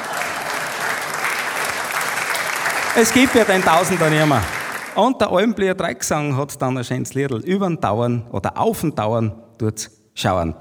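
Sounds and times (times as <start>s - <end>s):
audience applause at a Bavarian folk music and comedy evening: 0.0s - 5.0s
speech: 3.0s - 10.5s.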